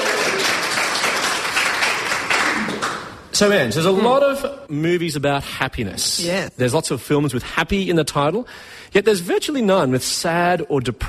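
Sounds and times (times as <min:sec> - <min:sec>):
audience applause: 0:00.0 - 0:03.2
speech: 0:03.4 - 0:11.0.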